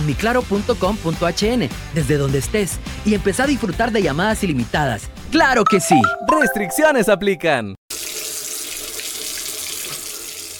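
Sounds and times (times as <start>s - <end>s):
speech: 0.1s - 7.8s
water running from a tap: 7.9s - 10.5s.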